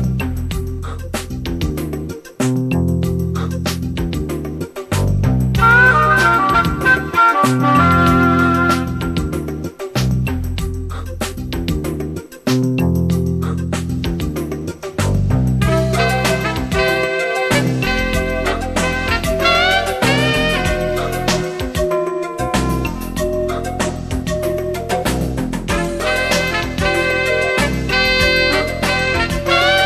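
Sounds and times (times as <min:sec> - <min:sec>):
Yamaha SY85 synthesizer: 0:00.0 - 0:29.8.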